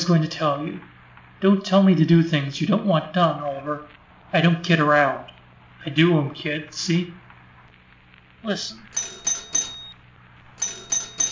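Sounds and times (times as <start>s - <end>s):
speech: 0.1s - 7.2s, 8.4s - 9.2s
doorbell ringing in sharp high metallic bursts: 8.9s - 10.0s, 10.6s - 11.3s.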